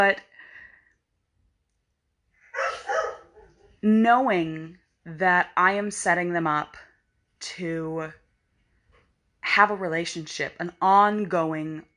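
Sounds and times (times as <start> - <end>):
speech: 0.0 - 0.3, 3.8 - 8.2, 9.4 - 11.9
dogs barking at home: 2.5 - 3.8.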